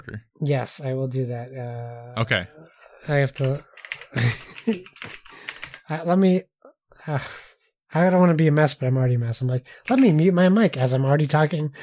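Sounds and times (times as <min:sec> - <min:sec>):
speech: 0:00.0 - 0:05.2, 0:05.9 - 0:11.8
computer keyboard typing: 0:03.1 - 0:05.9, 0:09.8 - 0:10.2.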